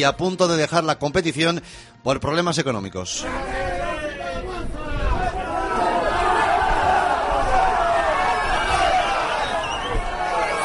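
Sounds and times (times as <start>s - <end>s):
speech: 0.0s - 3.7s
angry football crowd shouting and jeering in protest at stadium: 3.2s - 10.6s.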